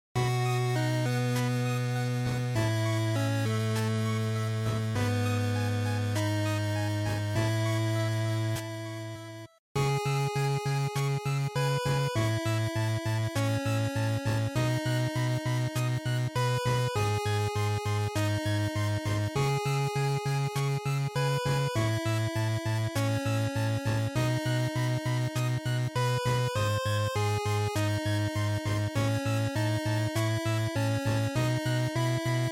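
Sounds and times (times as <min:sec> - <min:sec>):
Game Boy action game ending background music: 0:00.2 - 0:32.5.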